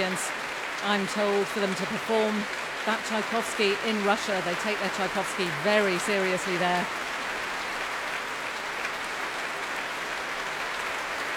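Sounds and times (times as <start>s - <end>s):
orchestra players applauding: 0.0s - 11.3s
speech: 0.1s - 7.1s.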